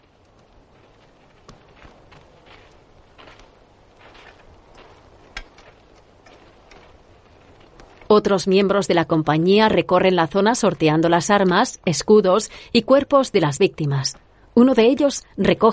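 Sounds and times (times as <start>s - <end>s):
steady rustling: 0.0s - 8.4s
loose horses walking with hooves clopping: 0.0s - 8.9s
speech: 8.1s - 15.7s.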